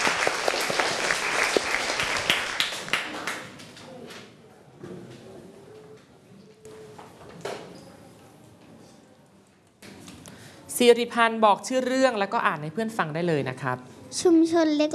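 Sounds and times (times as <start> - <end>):
applause for a student: 0.0 - 3.8
speech: 10.8 - 14.9.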